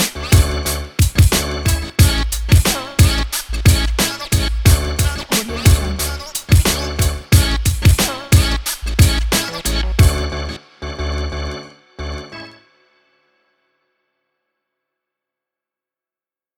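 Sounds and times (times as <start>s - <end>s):
hip hop music: 0.0s - 12.7s.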